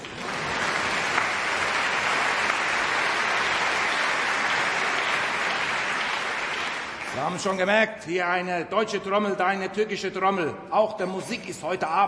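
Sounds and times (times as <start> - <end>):
audience applause for a janissary band: 0.0 - 7.5
speech: 7.2 - 12.0.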